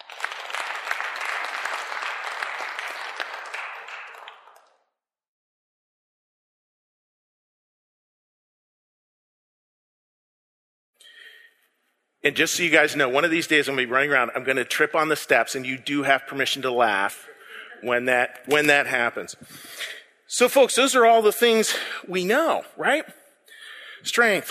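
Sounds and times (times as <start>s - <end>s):
crowd applauding: 0.0s - 4.8s
speech: 12.2s - 23.2s, 24.0s - 24.4s.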